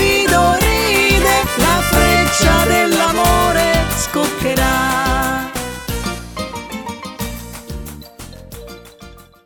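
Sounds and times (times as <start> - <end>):
karaoke singing: 0.0 - 6.6.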